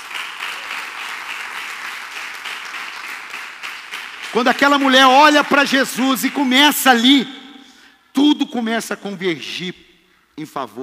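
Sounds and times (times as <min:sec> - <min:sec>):
audience applause: 0:00.0 - 0:06.5
speech: 0:04.3 - 0:07.4, 0:08.5 - 0:10.8.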